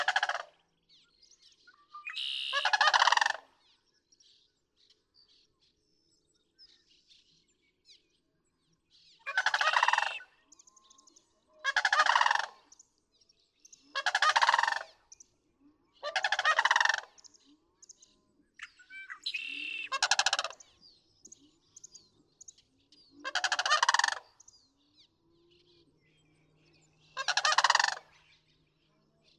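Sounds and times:
Sandhill Crane calling: 0:02.0 - 0:03.4, 0:09.3 - 0:10.3, 0:11.6 - 0:12.6, 0:13.9 - 0:14.9, 0:16.0 - 0:17.2, 0:18.7 - 0:20.6, 0:23.2 - 0:24.2, 0:27.1 - 0:28.2.

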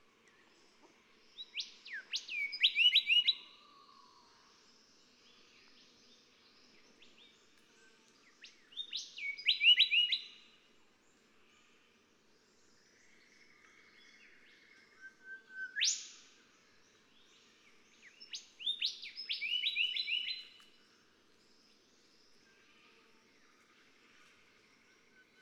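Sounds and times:
background hiss: 0:00.0 - 0:25.4
Golden whistler whistles ending in whipcracks: 0:15.5 - 0:16.2.

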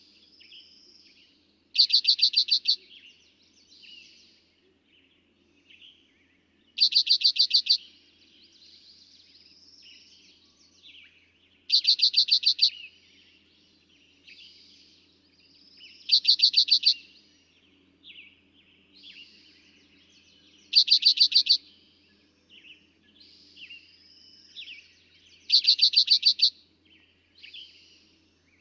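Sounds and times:
soft birdsong: 0:00.0 - 0:28.5
Eastern towhee singing repeated notes: 0:01.8 - 0:03.0, 0:06.8 - 0:07.8, 0:11.7 - 0:12.8, 0:15.9 - 0:17.6, 0:19.8 - 0:21.7, 0:24.5 - 0:26.5.

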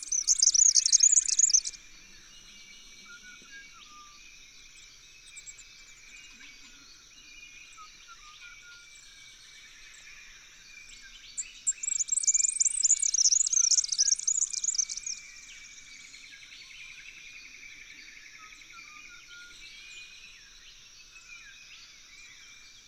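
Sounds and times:
Red-backed Fairy-wren: 0:00.0 - 0:22.8.

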